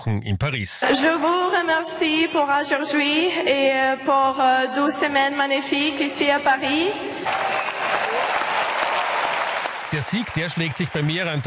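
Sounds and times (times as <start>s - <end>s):
speech: 0.0s - 7.5s, 9.9s - 11.4s
audience applause: 7.2s - 11.4s.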